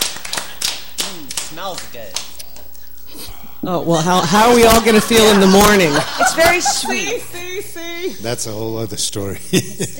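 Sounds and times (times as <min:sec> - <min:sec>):
people clapping hands: 0:00.0 - 0:02.7, 0:04.4 - 0:07.1
speech: 0:01.5 - 0:02.3, 0:03.1 - 0:09.9
laughter: 0:04.2 - 0:08.2, 0:09.4 - 0:09.9.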